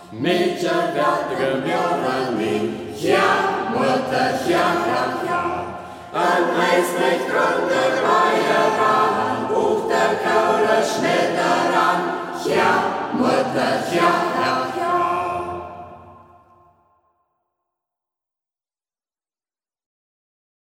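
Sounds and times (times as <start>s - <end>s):
singing circle singing a folk song in local dialect: 0.0s - 16.7s.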